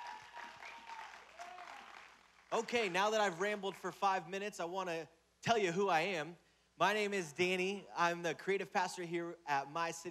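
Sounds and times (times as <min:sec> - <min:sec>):
audience applause: 0:00.0 - 0:03.6
speech: 0:02.5 - 0:10.0.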